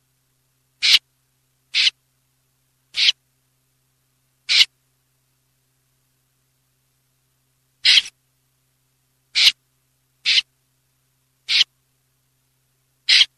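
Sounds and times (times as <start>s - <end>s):
snipe calling: 0.8s - 1.0s, 1.7s - 2.0s, 3.0s - 3.2s, 4.5s - 4.7s, 7.8s - 8.1s, 9.3s - 9.6s, 10.2s - 10.5s, 11.5s - 11.7s, 13.1s - 13.3s.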